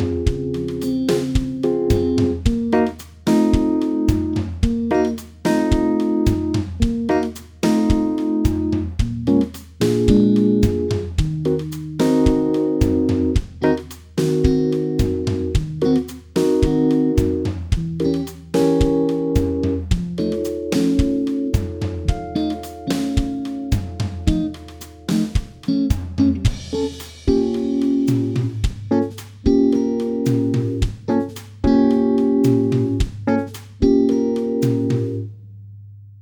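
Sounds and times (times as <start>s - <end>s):
bass playback: 0.0s - 36.2s.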